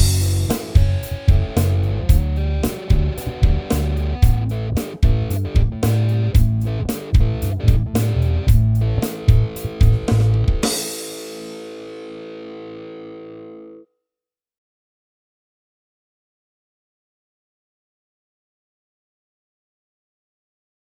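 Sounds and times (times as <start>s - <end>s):
solo backing music: 0.0s - 12.0s.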